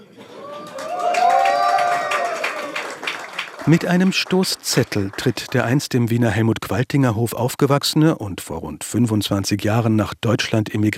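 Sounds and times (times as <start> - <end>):
crowd cheering with shouts and whoops: 0.0 - 5.8
dense audience clapping: 0.6 - 5.9
speech: 3.7 - 10.9.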